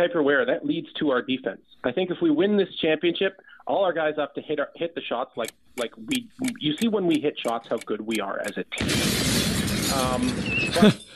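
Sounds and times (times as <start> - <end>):
speech: 0.0 - 11.1
bomb sound effect signalling time is up: 8.8 - 10.9.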